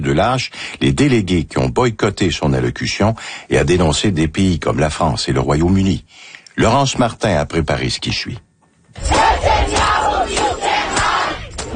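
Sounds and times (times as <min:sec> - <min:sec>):
speech: 0:00.0 - 0:09.1
street protest crowd shouting and chanting: 0:09.0 - 0:11.7.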